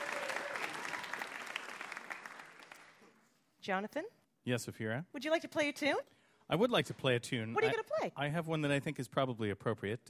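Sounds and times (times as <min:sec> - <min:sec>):
audience applause for a bar quiz game winner: 0:00.0 - 0:03.0
speech: 0:03.7 - 0:10.0.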